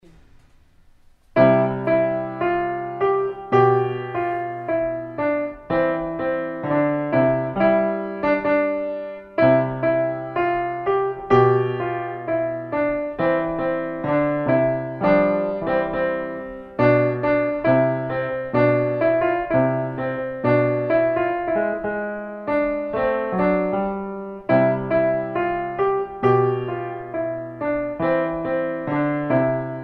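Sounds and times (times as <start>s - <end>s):
solo piano: 0.0s - 29.8s.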